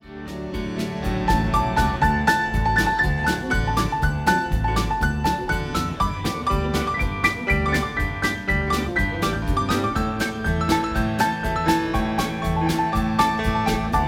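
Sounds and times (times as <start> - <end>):
solo piano: 0.1 - 14.0.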